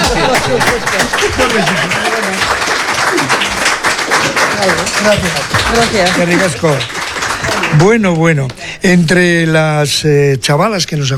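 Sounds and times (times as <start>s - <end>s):
laughter: 0.0s - 9.0s
audience applause: 0.0s - 9.4s
speech: 0.2s - 3.4s, 4.6s - 7.0s, 7.7s - 11.1s.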